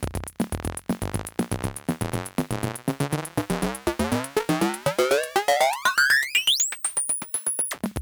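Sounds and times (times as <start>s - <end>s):
ring modulated drums: 0.1s - 7.8s.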